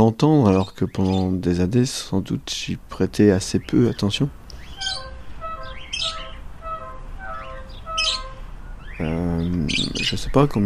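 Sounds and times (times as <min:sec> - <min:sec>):
speech: 0:00.0 - 0:05.0, 0:09.0 - 0:10.6
thinner chirping calls from several birds: 0:00.0 - 0:10.6
parakeets screeching: 0:00.5 - 0:01.3, 0:03.5 - 0:10.6.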